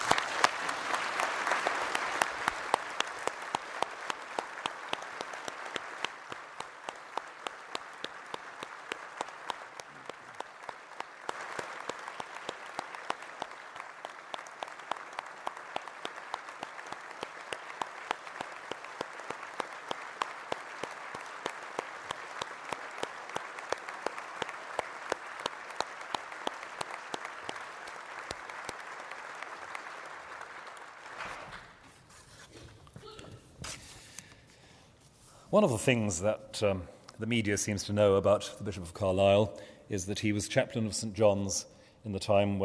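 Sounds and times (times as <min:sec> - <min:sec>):
sustained applause from a large audience: 0:00.0 - 0:31.8
speech: 0:35.6 - 0:42.6.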